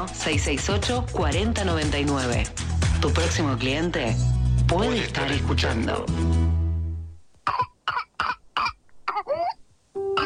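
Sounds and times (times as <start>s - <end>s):
speech: 0.0s - 6.4s
whooping cough coughing fit: 7.5s - 9.6s.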